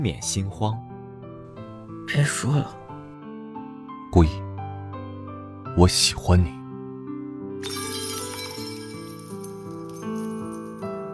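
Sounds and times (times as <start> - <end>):
speech: 0.0 - 0.9, 2.1 - 2.8, 4.1 - 4.4, 5.8 - 6.6
medicine wine bottle falling and shattering on the floor: 7.6 - 10.8.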